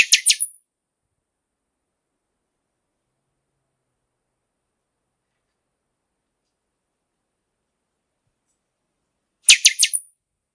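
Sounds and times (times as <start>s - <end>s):
Pixoxó bird singing: 0.0s - 0.6s, 9.5s - 10.1s.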